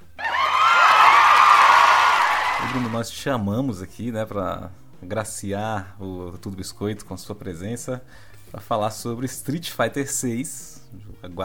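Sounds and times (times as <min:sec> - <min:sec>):
cheering with whoops and shouts: 0:00.2 - 0:03.0
crowd applause: 0:00.2 - 0:03.0
speech: 0:02.8 - 0:11.4.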